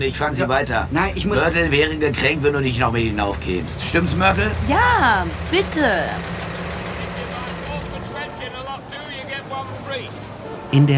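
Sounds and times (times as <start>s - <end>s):
speech: 0.0s - 6.4s, 10.7s - 10.9s
taxi engine rumbling as the cab pulls up on 158th Street: 0.0s - 10.7s.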